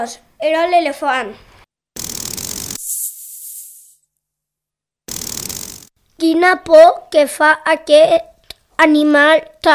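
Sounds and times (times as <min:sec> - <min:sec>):
speech: 0:00.0 - 0:01.5, 0:06.2 - 0:09.7
snake hissing: 0:02.0 - 0:04.0.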